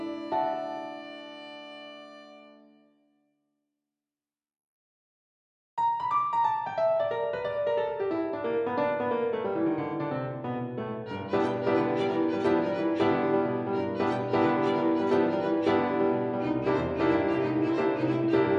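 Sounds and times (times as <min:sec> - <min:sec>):
piano: 0:00.0 - 0:03.0, 0:05.8 - 0:18.5
violin: 0:00.0 - 0:03.0, 0:11.0 - 0:18.5.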